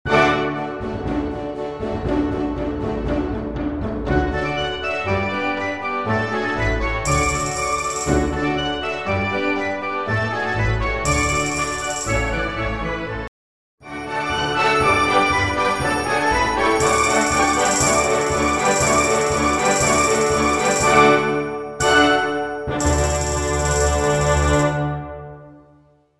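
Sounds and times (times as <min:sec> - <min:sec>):
polka with full orchestra accompaniment: 0:00.1 - 0:13.3, 0:13.9 - 0:25.3.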